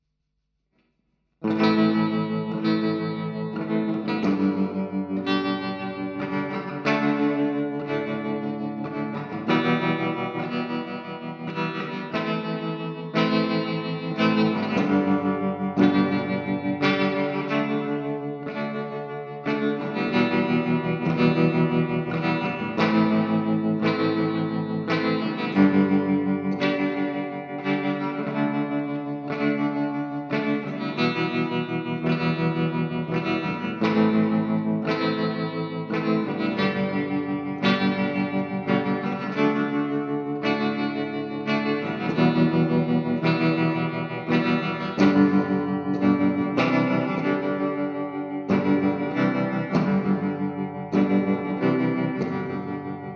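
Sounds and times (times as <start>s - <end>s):
guitar: 0.7s - 53.1s.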